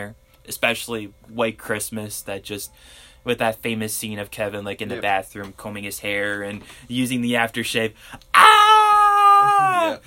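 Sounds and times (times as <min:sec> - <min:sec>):
speech: 0:00.0 - 0:08.5, 0:09.5 - 0:10.0
person imitating a boy's scream: 0:08.3 - 0:10.0.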